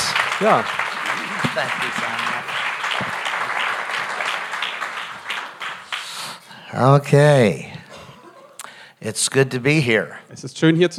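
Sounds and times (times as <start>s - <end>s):
audience clapping: 0.0s - 6.5s
speech: 0.4s - 0.8s, 1.5s - 3.1s, 6.8s - 7.7s, 9.0s - 10.9s
laughter: 7.9s - 8.7s.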